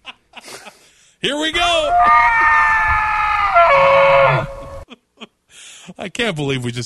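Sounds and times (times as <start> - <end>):
speech: 1.2 - 3.0, 6.0 - 6.8
elk trumpeting sound effect: 1.6 - 4.8.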